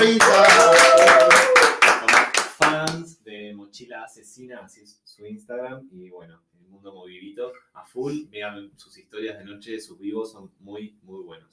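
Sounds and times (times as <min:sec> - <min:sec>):
speech: 0:00.0 - 0:00.5, 0:04.0 - 0:11.5
audience clapping: 0:00.0 - 0:03.0.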